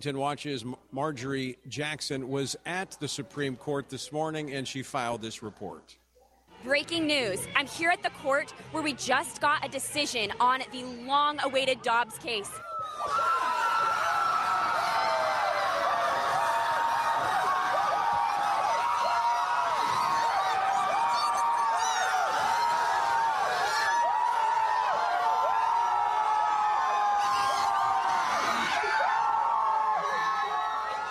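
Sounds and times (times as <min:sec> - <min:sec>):
speech: 0:00.0 - 0:06.0, 0:06.6 - 0:13.3
large crowd celebrating outside court: 0:11.5 - 0:31.0.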